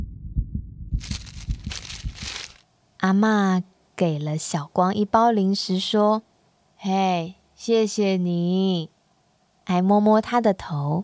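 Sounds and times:
pounding heartbeat sound effect: 0:00.0 - 0:02.3
speech: 0:03.0 - 0:08.9, 0:09.7 - 0:11.0.

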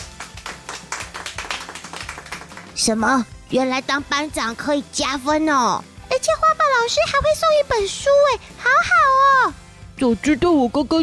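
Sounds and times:
students applauding a classmate in a classroom: 0:00.0 - 0:02.8
speech: 0:02.8 - 0:11.0.

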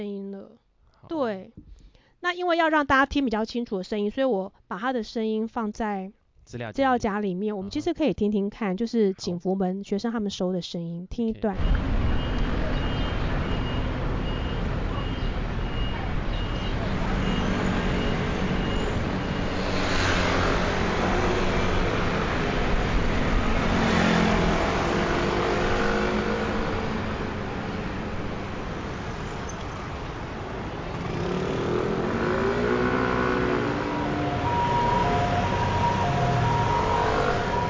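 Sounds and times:
speech: 0:00.0 - 0:11.9
bus engine rumble turning a corner: 0:11.4 - 0:31.1, 0:31.9 - 0:37.6
steady roadway traffic: 0:11.5 - 0:37.6.

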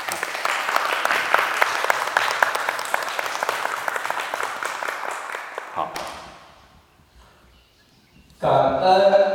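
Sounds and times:
assembly applauding: 0:00.0 - 0:06.2
speech: 0:08.4 - 0:09.2.

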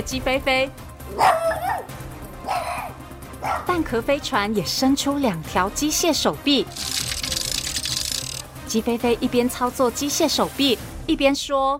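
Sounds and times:
speech: 0:00.0 - 0:07.4, 0:08.7 - 0:11.7
miniature teddy poodle barking: 0:01.1 - 0:03.8.

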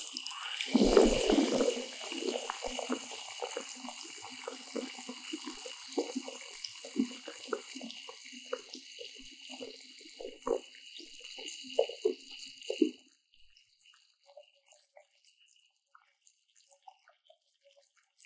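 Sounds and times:
low gurgling: 0:00.0 - 0:10.8
sparkling water fizzing: 0:00.0 - 0:13.0.

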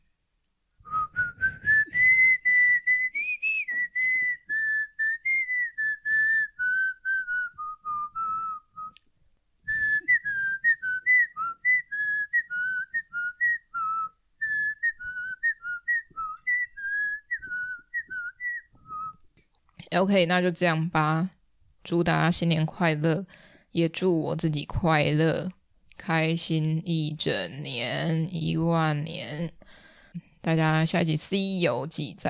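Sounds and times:
person whistling a cheerful New Year tune: 0:00.8 - 0:09.0, 0:09.7 - 0:19.2
speech: 0:19.9 - 0:32.2.

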